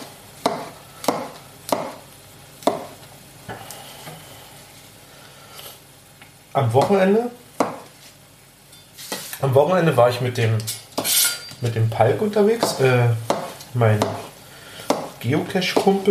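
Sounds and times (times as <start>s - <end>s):
knife chopping mushrooms into small pieces on a board: 0.0s - 2.0s, 2.6s - 3.0s, 6.8s - 7.0s, 7.6s - 7.9s, 12.6s - 16.0s
speech: 6.6s - 7.4s, 9.6s - 10.8s, 11.6s - 14.2s, 15.2s - 16.0s.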